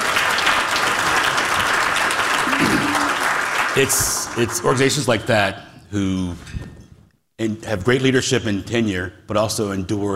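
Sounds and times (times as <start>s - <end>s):
audience applause: 0.0s - 5.1s
speech: 3.8s - 6.7s, 7.4s - 10.1s.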